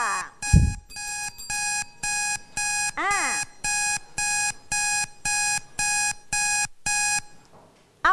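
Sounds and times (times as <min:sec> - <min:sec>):
countdown timer alarm signaling time up: 0:00.0 - 0:07.4.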